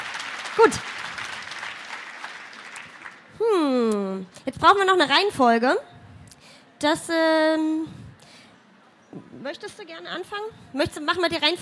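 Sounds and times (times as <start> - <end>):
audience applause for contest finalists: 0.0 - 3.3
speech: 0.6 - 1.0, 4.2 - 5.9, 6.8 - 8.0, 9.2 - 11.5.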